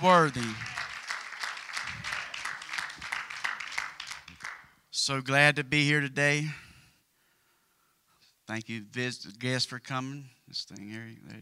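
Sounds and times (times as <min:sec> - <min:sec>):
speech: 0:00.0 - 0:00.7, 0:05.1 - 0:06.6, 0:08.5 - 0:11.4
audience clapping: 0:00.0 - 0:04.8.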